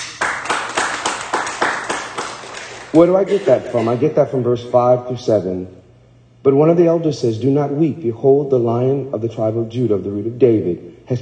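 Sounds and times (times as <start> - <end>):
church congregation clapping in rhythm: 0.0 - 4.0
speech: 2.9 - 5.8, 6.4 - 11.2.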